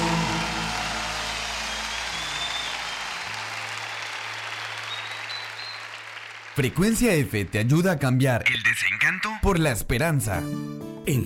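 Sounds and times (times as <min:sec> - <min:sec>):
applause: 0:00.0 - 0:08.5
speech: 0:06.6 - 0:11.2.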